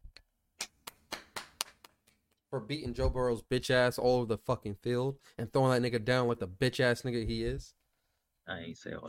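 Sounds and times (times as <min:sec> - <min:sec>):
person clapping hands: 0:00.6 - 0:02.2
speech: 0:02.5 - 0:07.8, 0:08.5 - 0:09.0.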